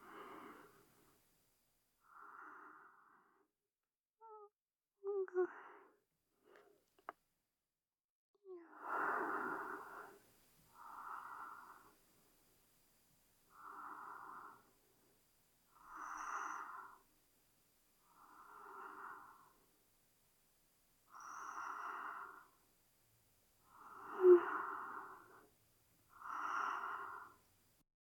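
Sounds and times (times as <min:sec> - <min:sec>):
sleeping breathing beside the listener: 0:00.0 - 0:01.1, 0:08.8 - 0:12.0, 0:13.5 - 0:14.8, 0:15.7 - 0:17.1, 0:18.0 - 0:19.7, 0:21.1 - 0:22.6, 0:23.6 - 0:25.5, 0:26.1 - 0:27.5.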